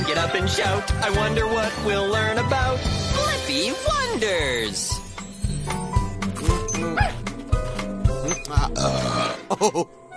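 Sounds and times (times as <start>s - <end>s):
speech: 0.2s - 5.0s, 8.5s - 10.0s
tinkling effects: 3.6s - 7.0s
loud burp from a children's cartoon character: 8.6s - 9.8s.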